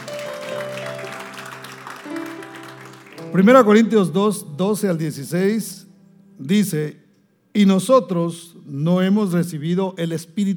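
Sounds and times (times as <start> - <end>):
audience applauding: 0.0 - 3.8
speech: 3.3 - 5.8, 6.4 - 7.0, 7.6 - 10.5.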